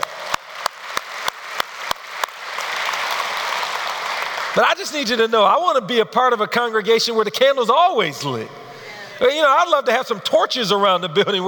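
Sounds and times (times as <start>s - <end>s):
audience clapping: 0.0s - 5.4s
speech: 4.6s - 8.6s, 9.2s - 11.4s.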